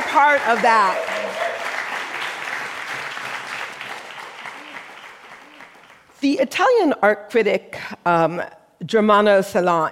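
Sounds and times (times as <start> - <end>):
audience applause: 0.0 - 6.1
speech: 0.1 - 1.1, 6.2 - 9.9.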